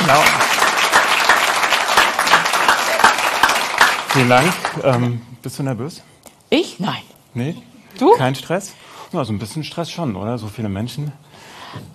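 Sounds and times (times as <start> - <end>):
audience applause: 0.0 - 5.2
speech: 0.1 - 0.4, 4.2 - 11.9.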